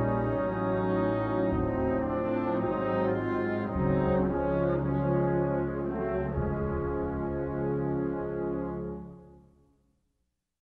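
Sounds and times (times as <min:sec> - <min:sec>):
instrumental national anthem: 0:00.0 - 0:09.6.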